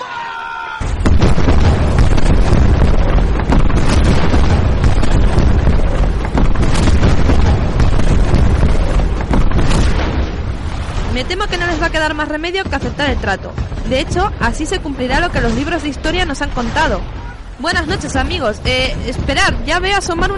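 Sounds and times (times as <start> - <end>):
cannon fire from American warships arriving at Tokyo: 0.8 - 20.3
speech: 11.6 - 20.3.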